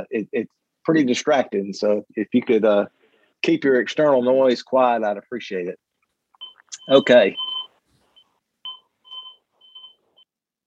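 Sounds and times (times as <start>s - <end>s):
speech: 0.1s - 5.8s, 6.7s - 7.5s
clock beeping: 6.4s - 7.7s, 8.7s - 10.0s.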